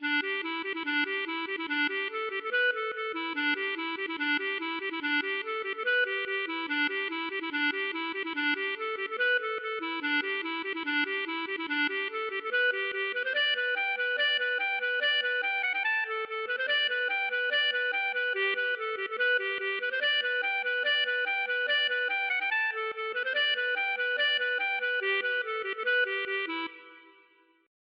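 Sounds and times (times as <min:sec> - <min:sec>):
polka music: 0:00.0 - 0:27.0.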